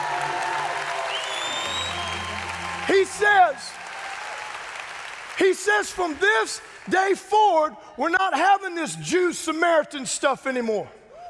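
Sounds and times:
audience clapping: 0.0 - 7.4
speech: 2.9 - 3.8, 5.4 - 11.0.

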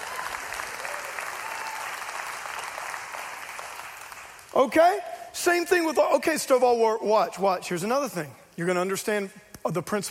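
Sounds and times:
audience applause: 0.0 - 4.5
speech: 4.6 - 10.0.

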